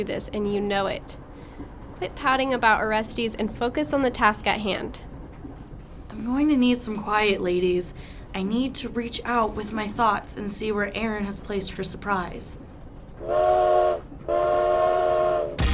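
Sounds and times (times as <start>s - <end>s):
speech: 0.0s - 1.2s, 2.0s - 5.1s, 6.2s - 12.6s, 13.2s - 13.7s
train whistle blasts: 13.2s - 15.6s.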